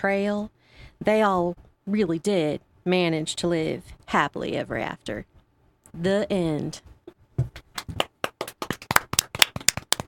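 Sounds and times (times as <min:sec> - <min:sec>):
speech: 0:00.0 - 0:05.3, 0:06.0 - 0:08.0
people clapping: 0:07.6 - 0:10.0.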